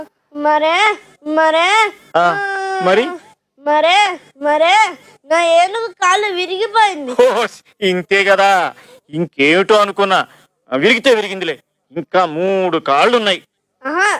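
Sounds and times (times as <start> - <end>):
young boy crying in wailing sobs: 0.0 - 7.5, 13.8 - 14.1
speech: 0.0 - 14.1.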